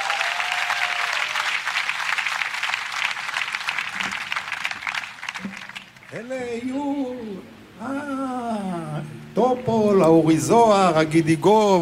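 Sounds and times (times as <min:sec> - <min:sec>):
audience applause: 0:00.0 - 0:06.2
speech: 0:06.1 - 0:11.7.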